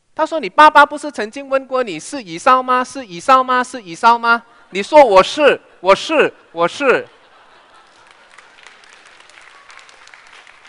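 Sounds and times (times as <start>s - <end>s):
speech: 0.2s - 7.2s
laughter: 4.7s - 10.6s
crowd applauding: 7.2s - 10.6s.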